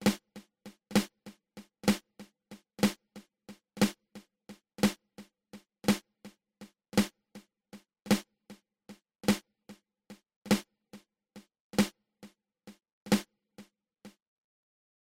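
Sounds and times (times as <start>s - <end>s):
flam accent open close open: 0.0s - 9.8s, 10.5s - 10.7s, 11.8s - 12.0s, 12.7s - 13.3s.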